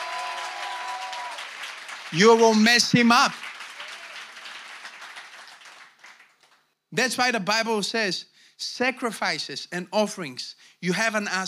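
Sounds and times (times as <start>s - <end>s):
audience clapping: 0.0s - 6.8s
speech: 2.1s - 3.4s, 7.0s - 11.4s.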